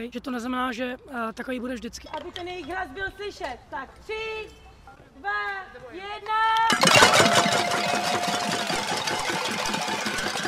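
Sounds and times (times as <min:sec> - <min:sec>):
speech: 0:00.0 - 0:04.6, 0:05.2 - 0:09.4
dozens of children drumming on drums, pots, plates and buckets: 0:06.7 - 0:10.4.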